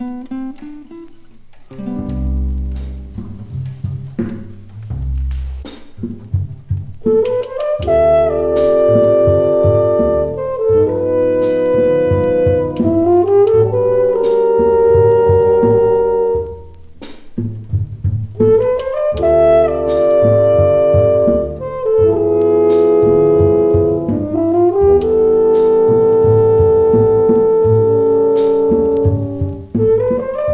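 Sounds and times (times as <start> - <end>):
rhythm section: 0.0 - 30.5
four French horns: 7.0 - 17.0, 18.3 - 30.5.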